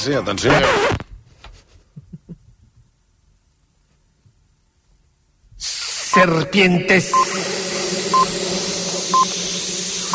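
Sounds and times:
speech: 0.0s - 1.0s, 5.6s - 7.6s
radio hourly time signal pips: 7.1s - 10.1s.

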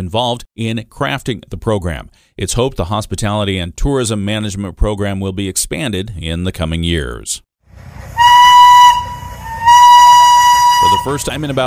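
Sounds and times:
speech: 0.0s - 8.1s, 10.8s - 11.6s
House of David steam-powered locomotive 902 operating at Michigan Flywheelers Museum: 7.7s - 11.6s.

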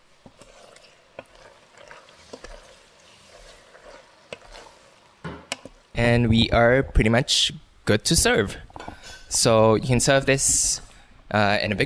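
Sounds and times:
pasta stirred into a creamy miso mushroom sauce in a pan: 0.0s - 6.0s
speech: 6.0s - 8.6s, 9.3s - 11.8s.

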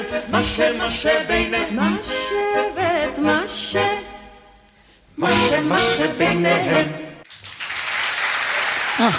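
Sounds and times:
speech: 0.2s - 3.9s, 5.4s - 7.0s, 9.0s - 9.1s
applause: 7.3s - 9.1s.

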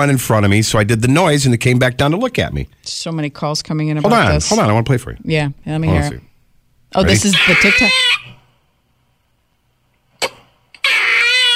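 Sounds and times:
speech: 0.0s - 6.3s, 6.9s - 8.2s
squirrel alarm danger call: 7.1s - 8.4s, 10.8s - 11.5s.

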